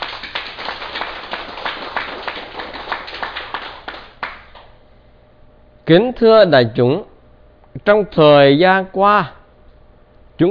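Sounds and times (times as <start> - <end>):
crowd applause: 0.0 - 4.7
speech: 5.9 - 7.1, 7.8 - 9.4.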